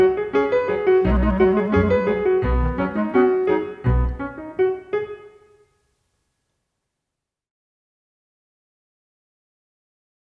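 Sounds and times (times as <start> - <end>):
instrumental music: 0.0 - 5.7.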